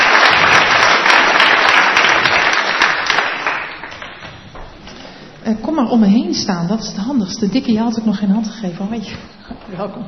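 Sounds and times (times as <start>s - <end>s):
crowd applauding: 0.0s - 4.4s
speech: 5.5s - 10.0s.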